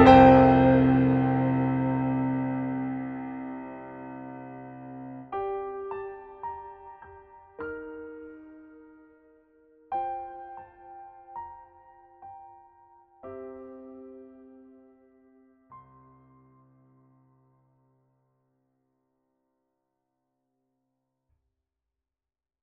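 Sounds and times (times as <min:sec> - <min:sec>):
CFX grand piano run: 0:00.0 - 0:09.0.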